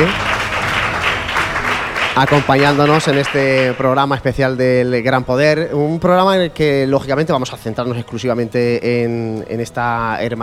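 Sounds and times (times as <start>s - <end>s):
speech: 0.0s - 0.3s, 2.2s - 10.4s
audience applause: 0.0s - 4.0s.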